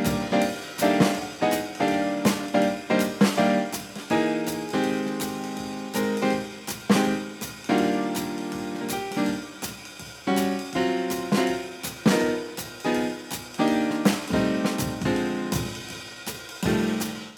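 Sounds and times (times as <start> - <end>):
jazz improvisation backing track without bass: 0.0 - 17.3.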